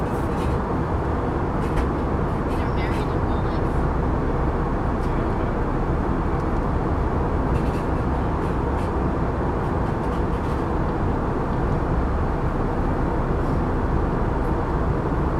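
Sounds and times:
plane cabin roar during a flight: 0.0 - 15.3.

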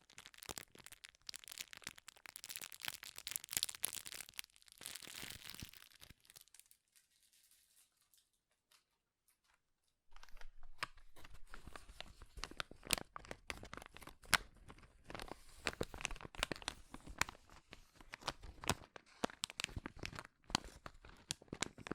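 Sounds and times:
material being crushed and handled, crinkling: 0.0 - 8.3, 10.1 - 21.9.

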